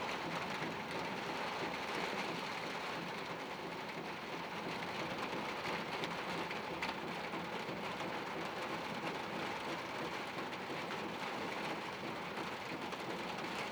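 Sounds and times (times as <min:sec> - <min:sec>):
rain on a sheet metal roof heard from inside a bathroom: 0:00.1 - 0:13.6.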